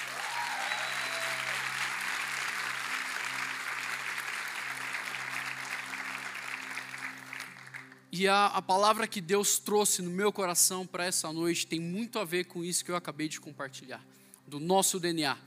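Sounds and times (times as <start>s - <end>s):
audience applause: 0.0s - 8.0s
speech: 8.1s - 15.4s.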